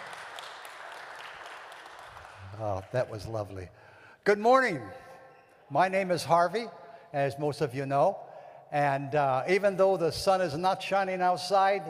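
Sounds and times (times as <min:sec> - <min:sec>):
crowd clapping: 0:00.0 - 0:03.6
speech: 0:02.6 - 0:05.0, 0:05.7 - 0:11.8.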